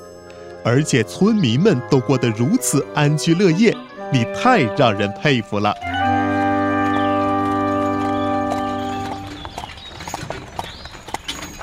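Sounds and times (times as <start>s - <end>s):
sustained musical tone: 0.0s - 9.4s
speech: 0.6s - 6.0s
hooves of a horse-drawn royal carriage passing through a village: 3.7s - 11.6s.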